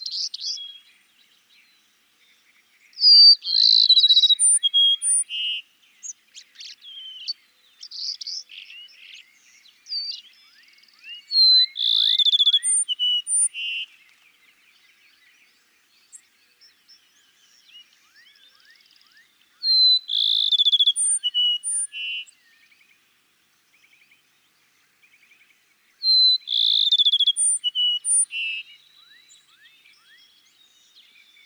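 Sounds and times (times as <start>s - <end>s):
Cassin's sparrow song: 0.0s - 31.4s
faint rising calls of other birds: 0.0s - 31.4s.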